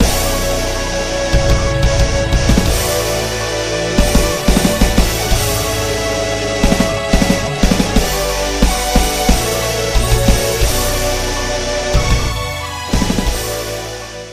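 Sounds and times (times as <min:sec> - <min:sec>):
intro music: 0:00.0 - 0:14.3.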